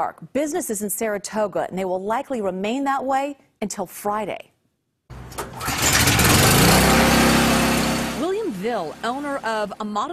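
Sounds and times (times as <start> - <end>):
speech: 0.0 - 4.5, 8.6 - 10.1
generator starting at Amato's Cheesesteaks in Saratoga during a power outage: 5.1 - 9.7.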